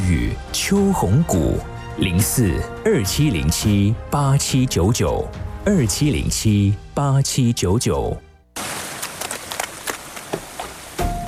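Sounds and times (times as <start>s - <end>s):
speech: 0.3s - 8.2s
sudden rain: 8.6s - 11.2s.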